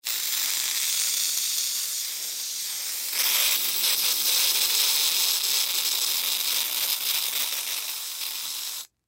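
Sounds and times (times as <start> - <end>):
Silly String spray can spraying: 0.0 - 8.9.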